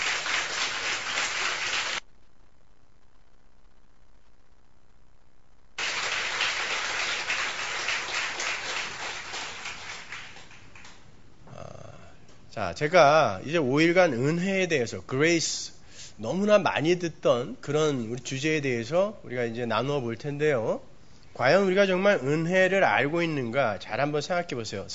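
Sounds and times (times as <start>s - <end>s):
audience applause: 0.0s - 2.0s, 5.8s - 11.0s
speech: 12.6s - 24.9s.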